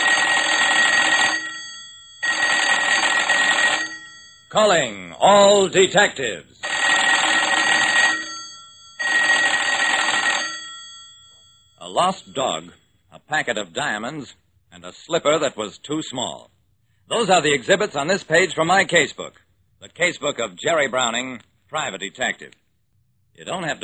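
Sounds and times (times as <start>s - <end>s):
telephone bell ringing: 0.0s - 4.6s, 6.6s - 12.5s
speech: 4.5s - 6.5s, 11.9s - 16.5s, 17.1s - 22.6s, 23.4s - 23.8s.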